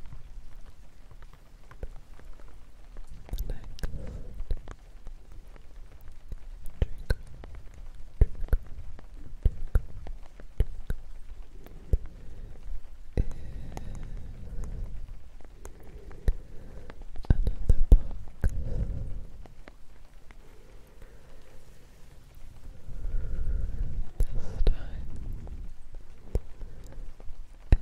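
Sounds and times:
faint steady hiss: 0.0 - 27.8
person whispering: 3.1 - 4.7, 6.7 - 7.3, 8.2 - 9.9, 10.6 - 19.5, 20.4 - 27.8.

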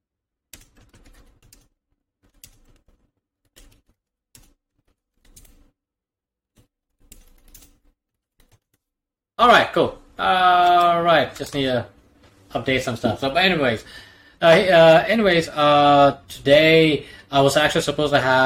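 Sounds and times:
typing on a computer keyboard: 0.5 - 5.7, 7.0 - 8.8
speech: 9.4 - 18.4.

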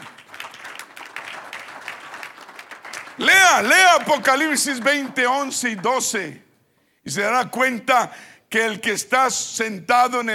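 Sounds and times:
crowd applause: 0.0 - 5.9
speech: 3.2 - 6.5, 7.1 - 10.3.

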